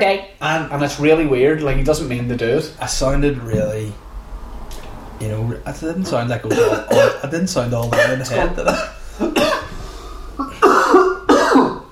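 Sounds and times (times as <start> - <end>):
speech: 0.0 - 4.0, 5.2 - 9.0
raspy coughing after water went down the wrong way: 6.1 - 9.8, 10.4 - 11.8.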